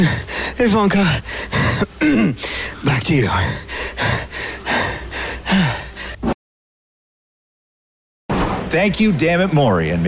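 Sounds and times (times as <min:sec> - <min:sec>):
speech: 0:00.0 - 0:03.8, 0:08.7 - 0:10.0
runner wheezing breaths during a race: 0:01.2 - 0:02.8, 0:03.4 - 0:06.3.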